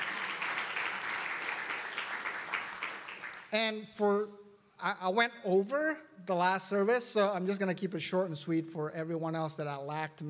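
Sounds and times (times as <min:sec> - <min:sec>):
audience applause: 0:00.0 - 0:03.5
speech: 0:03.5 - 0:10.2.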